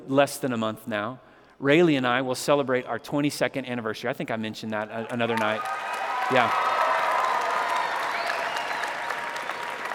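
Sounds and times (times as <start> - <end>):
speech: 0.1 - 6.7
audience applause: 5.0 - 9.9.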